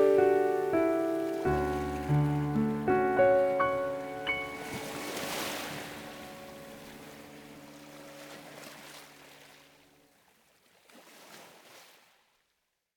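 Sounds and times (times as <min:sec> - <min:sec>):
instrumental music: 0:00.0 - 0:08.8
ocean waves: 0:00.0 - 0:12.2.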